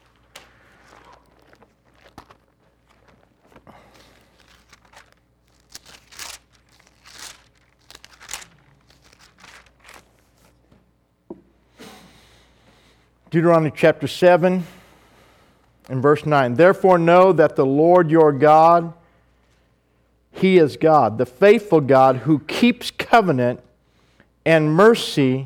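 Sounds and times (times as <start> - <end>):
congregation turning Bible pages: 0.0 - 10.6
speech: 13.4 - 14.8, 16.0 - 19.0, 20.4 - 23.7, 24.4 - 25.4.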